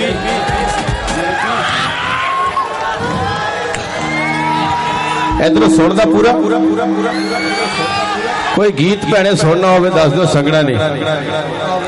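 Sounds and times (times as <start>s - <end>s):
audience cheering with whoops and shouts: 0.0s - 9.0s
speech: 5.4s - 11.8s.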